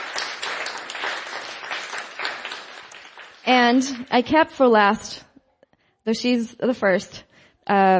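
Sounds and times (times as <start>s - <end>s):
crowd applause: 0.0s - 4.0s
speech: 3.5s - 5.3s, 6.1s - 7.9s.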